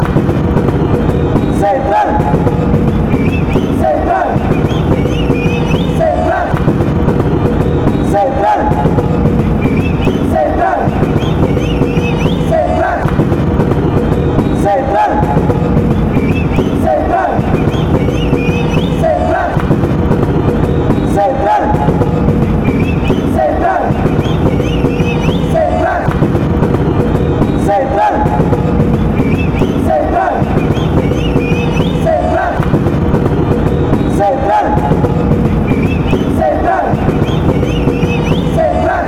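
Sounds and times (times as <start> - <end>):
La Liga football crowd chanting: 0.0 - 39.0.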